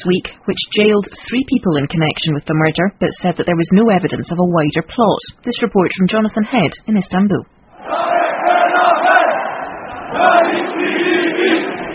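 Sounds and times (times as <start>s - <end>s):
speech: 0.0s - 8.0s
large protest crowd chanting in the street: 7.7s - 11.9s.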